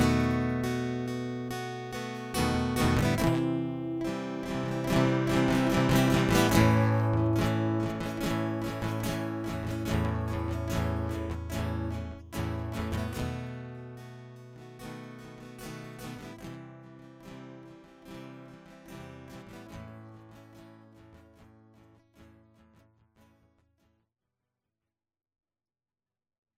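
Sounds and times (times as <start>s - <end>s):
guitar loop: 0.0s - 20.7s.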